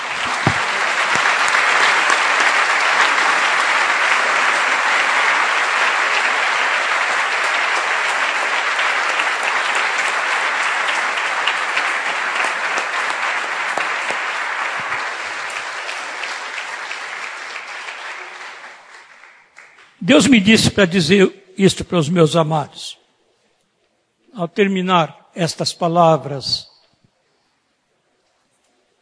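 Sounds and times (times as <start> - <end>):
audience applauding: 0.0 - 21.2
speech: 20.1 - 22.9, 24.4 - 26.7.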